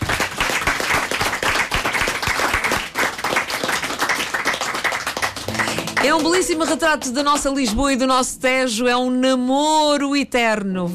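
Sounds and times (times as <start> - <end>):
crowd applause: 0.0 - 7.4
speech: 6.2 - 10.9.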